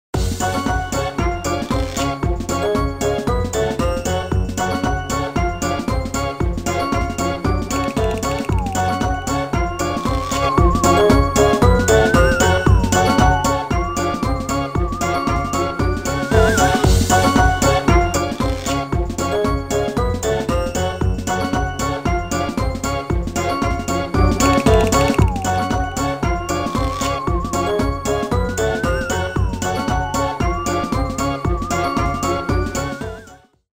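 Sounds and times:
spooky Halloween theme music: 0:00.2 - 0:33.6.

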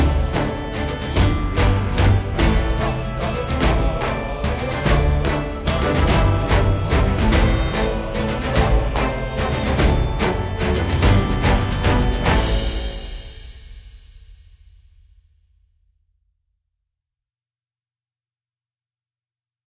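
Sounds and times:
main menu music: 0:00.0 - 0:13.3.

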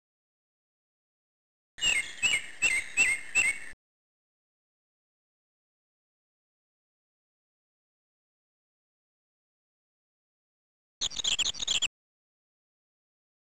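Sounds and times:
birds: 0:01.8 - 0:03.8, 0:11.0 - 0:11.9.

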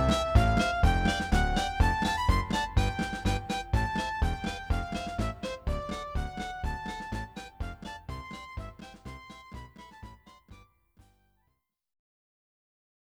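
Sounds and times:
march music: 0:00.0 - 0:10.2.

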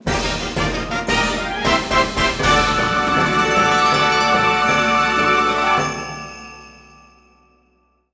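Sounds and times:
result fanfare: 0:00.1 - 0:06.3.

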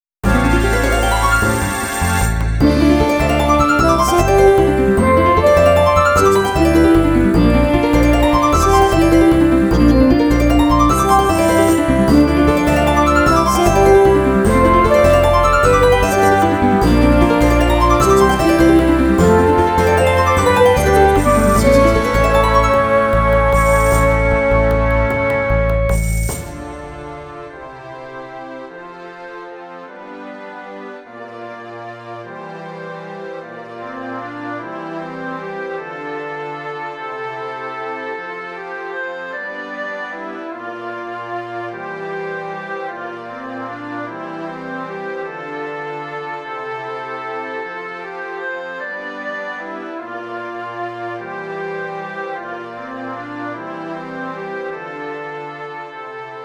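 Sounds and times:
harp performance: 0:00.2 - 0:25.2.

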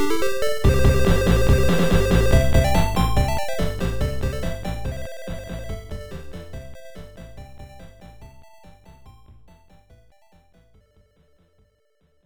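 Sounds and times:
bonus stage background game music: 0:00.0 - 0:09.1.

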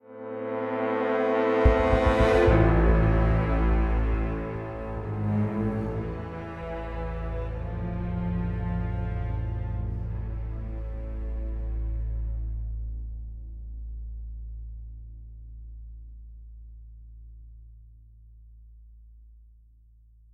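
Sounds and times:
string instrument: 0:00.0 - 0:13.5.

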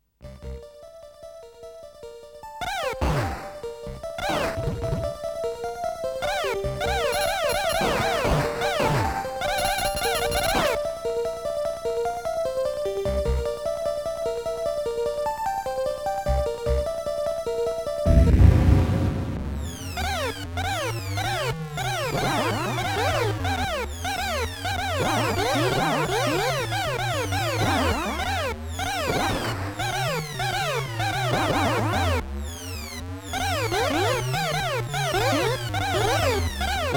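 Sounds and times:
scroll screen game background music: 0:00.2 - 0:36.9
boss explosion in gameplay: 0:18.1 - 0:20.3.

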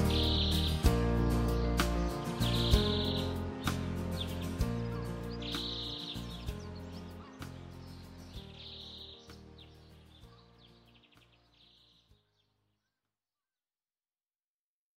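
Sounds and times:
forest song: 0:00.0 - 0:10.0.

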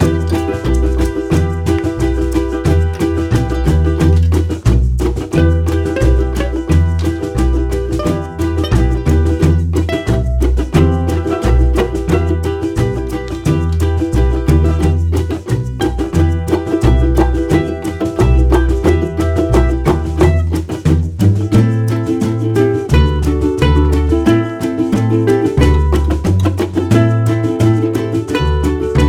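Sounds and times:
ukulele loop: 0:00.0 - 0:29.0.

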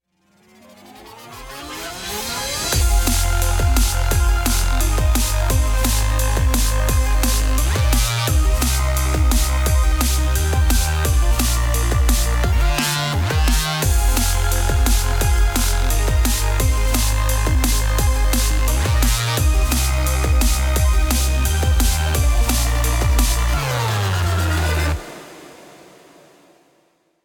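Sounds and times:
heavy drum and bass: 0:01.4 - 0:25.6.

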